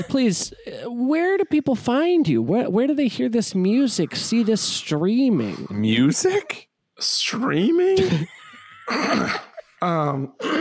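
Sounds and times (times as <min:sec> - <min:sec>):
speech: 0:00.0 - 0:08.3, 0:08.9 - 0:10.5
laughter: 0:07.9 - 0:09.8
person clearing throat: 0:08.9 - 0:09.6, 0:10.4 - 0:10.5.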